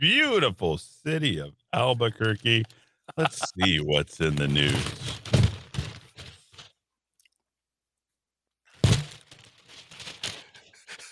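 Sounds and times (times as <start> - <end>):
speech: 0.0 - 5.2
laughter: 3.1 - 4.3
rustling: 4.4 - 6.7, 8.8 - 10.7.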